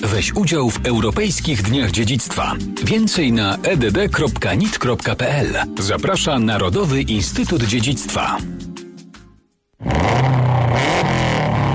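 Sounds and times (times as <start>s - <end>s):
speech: 0.1s - 8.6s
rally car engine revving: 9.8s - 11.7s.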